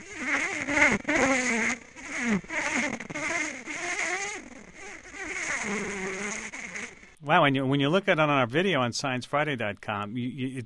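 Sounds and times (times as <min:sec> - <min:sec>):
honeybee buzz run signal in swarm: 0:00.0 - 0:07.2
speech: 0:07.3 - 0:10.6.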